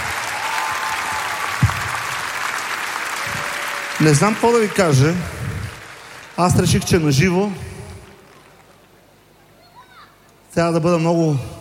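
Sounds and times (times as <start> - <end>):
audience applause: 0.0 - 9.0
speech: 4.0 - 5.4, 6.4 - 7.7, 10.6 - 11.5.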